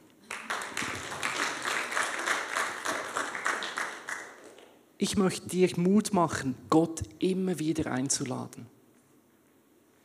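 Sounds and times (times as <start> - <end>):
applause: 0.2 - 4.8
speech: 5.0 - 8.8.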